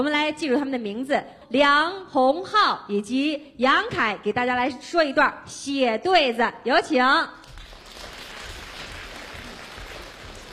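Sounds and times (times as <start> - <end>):
speech: 0.0 - 7.4
audience applause: 7.5 - 10.5.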